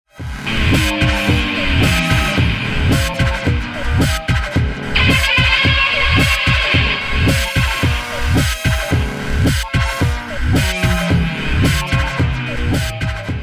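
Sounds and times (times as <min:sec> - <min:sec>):
guitar: 0:00.2 - 0:13.4.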